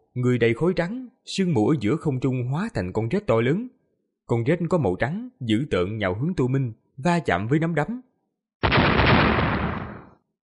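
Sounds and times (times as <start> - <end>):
speech: 0.2 - 8.7
loud booming explosion: 8.6 - 10.2.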